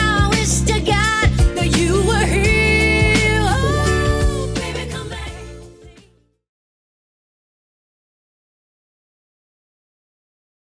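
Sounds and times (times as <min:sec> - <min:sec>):
80s Redrum drum machine beat: 0:00.0 - 0:05.6.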